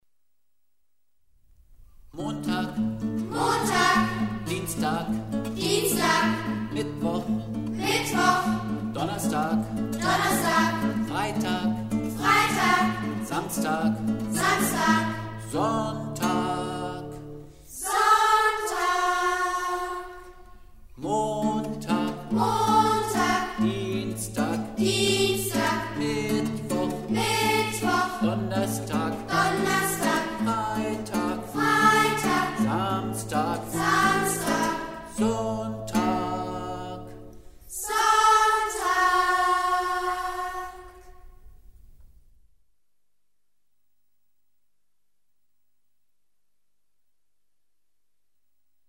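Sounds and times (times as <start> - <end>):
chant about the days of the week: 2.2 - 41.2.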